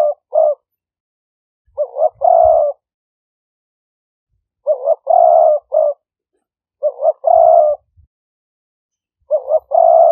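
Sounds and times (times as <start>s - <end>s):
spotted dove cooing: 0.0s - 0.8s, 1.7s - 2.9s, 4.6s - 6.1s, 6.8s - 8.1s, 9.2s - 10.1s.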